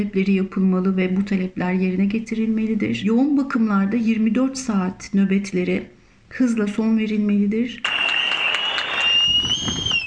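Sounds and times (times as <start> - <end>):
speech: 0.0 - 8.0
applause for health workers: 7.8 - 10.0.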